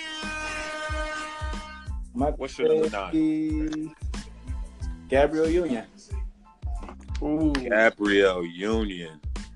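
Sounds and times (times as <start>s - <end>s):
air horn sound effect: 0.0s - 2.1s
speech: 2.2s - 4.0s, 5.1s - 6.2s, 7.2s - 9.2s.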